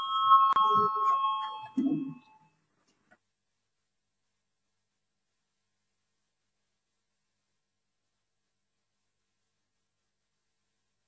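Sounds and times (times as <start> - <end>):
parliament voting bell electronic tone: 0.0 - 2.5.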